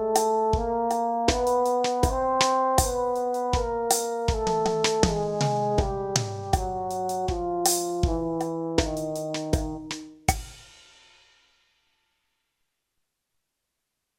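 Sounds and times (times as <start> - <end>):
brass chromatic scale in E flat: 0.0 - 10.2.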